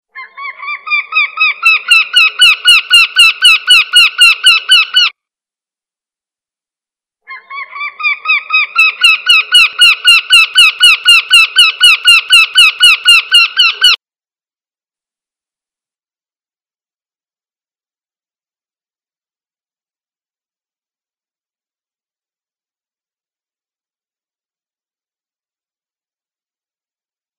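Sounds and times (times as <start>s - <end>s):
bird calls: 0.1s - 5.1s, 7.3s - 14.0s.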